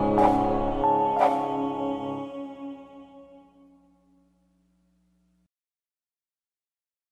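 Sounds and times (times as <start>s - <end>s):
criminal background music without words: 0.2s - 2.3s.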